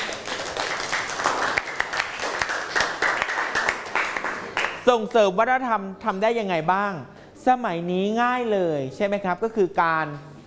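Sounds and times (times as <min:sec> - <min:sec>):
audience applause: 0:00.0 - 0:04.8
speech: 0:04.9 - 0:10.3.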